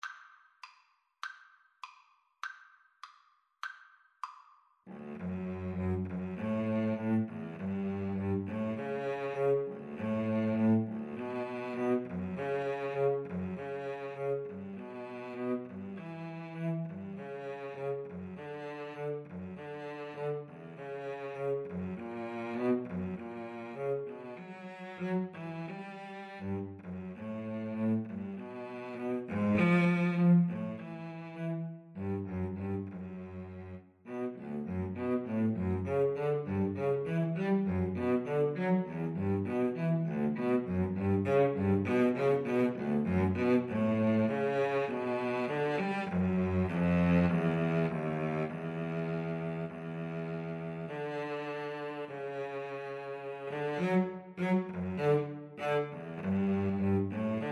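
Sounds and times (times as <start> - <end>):
cello duet: 4.9 - 57.5.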